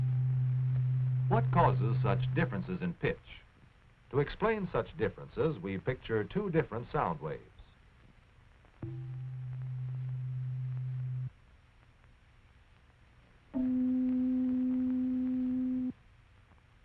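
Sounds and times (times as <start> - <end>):
tuning fork tone, C below middle C: 0.0 - 2.7, 8.8 - 11.3, 13.6 - 15.9
speech: 1.3 - 3.5, 4.1 - 7.5, 8.8 - 9.1.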